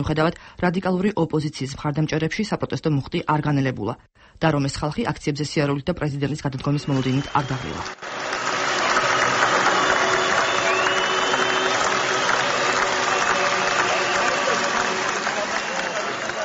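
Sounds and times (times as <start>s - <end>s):
speech: 0.0s - 8.4s
crowd ovation at the national stadium for a singer at an opposition protest rally: 6.7s - 16.4s.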